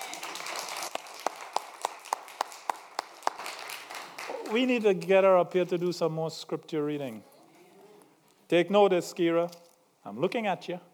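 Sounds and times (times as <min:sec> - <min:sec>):
audience applause: 0:00.0 - 0:05.1
hands clapping sharp beats: 0:00.0 - 0:05.5
speech: 0:04.5 - 0:07.3, 0:08.5 - 0:10.9.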